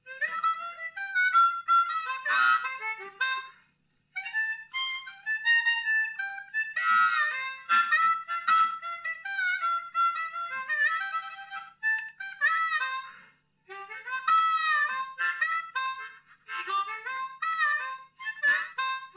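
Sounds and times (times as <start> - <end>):
harmonica: 0.0 - 19.1.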